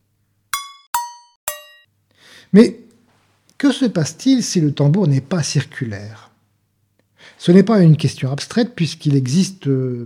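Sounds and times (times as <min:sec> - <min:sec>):
saucepans of three sizes struck in turn: 0:00.5 - 0:01.9
speech: 0:02.4 - 0:02.8, 0:03.6 - 0:06.3, 0:07.4 - 0:10.0.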